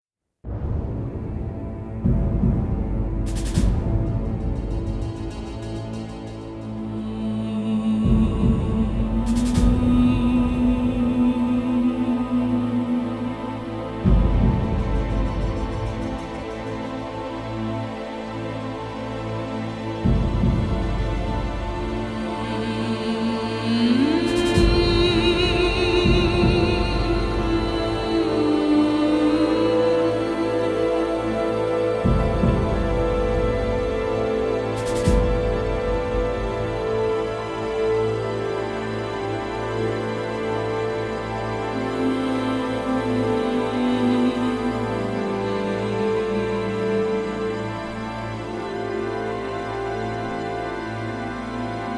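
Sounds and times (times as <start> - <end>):
trance music: 0.5 - 51.9.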